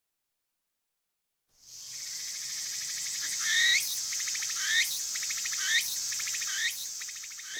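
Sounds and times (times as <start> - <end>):
cricket chirping: 1.6 - 7.5.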